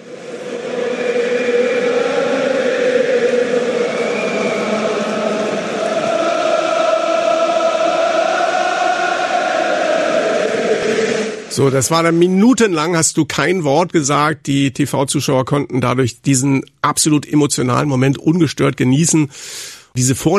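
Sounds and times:
huge stadium crowd of football fans singing a chant: 0.0 - 12.2
speech: 11.6 - 20.3.

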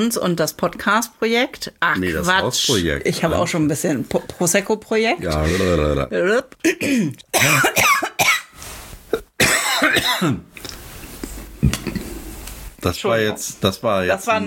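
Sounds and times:
speech: 0.0 - 8.2, 9.9 - 10.6, 12.8 - 14.4
person coughing after swallowing Prosecco the wrong way: 6.7 - 8.5, 9.2 - 10.5.

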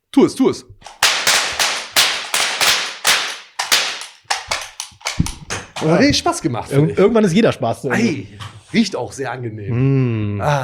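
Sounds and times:
speech: 0.2 - 1.0, 5.8 - 10.6
confetti cannons firing: 0.8 - 5.8.

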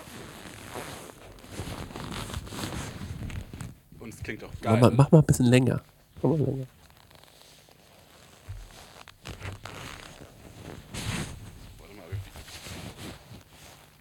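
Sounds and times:
leather trousers creaking: 0.0 - 3.8, 6.7 - 13.9
speech: 4.1 - 6.8.

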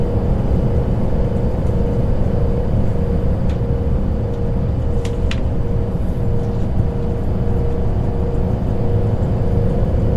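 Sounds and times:
constant hum: 0.0 - 10.1
train rumbling on a night journey: 0.0 - 10.1.

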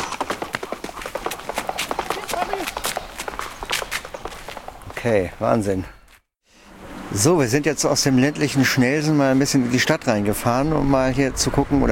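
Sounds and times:
horse galloping: 0.0 - 5.4
speech: 5.0 - 6.0, 7.1 - 11.9.

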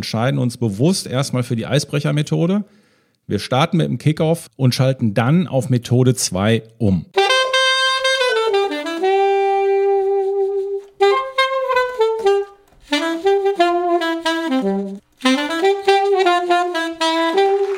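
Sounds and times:
speech: 0.0 - 7.2
saxophone: 7.2 - 17.7.

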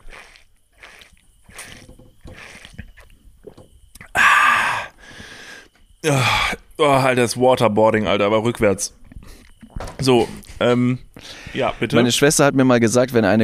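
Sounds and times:
sucking water from a large 3 liter drinking bottle: 0.0 - 4.2
speech: 6.0 - 9.0, 10.0 - 13.4.

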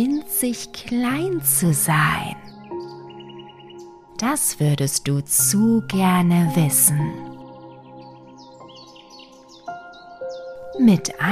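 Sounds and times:
speech: 0.0 - 2.5, 4.2 - 7.3, 10.8 - 11.3
blue tit chirping: 1.3 - 4.6, 6.3 - 11.2.

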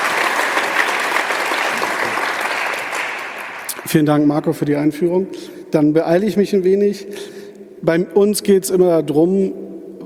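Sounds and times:
audience applause: 0.0 - 4.1
speech: 3.9 - 9.7.

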